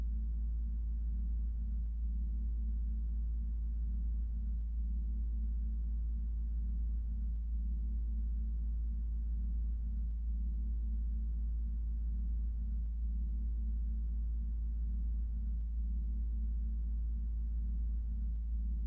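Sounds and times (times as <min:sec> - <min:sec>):
low continuous tone in B flat: 0:00.0 - 0:18.8.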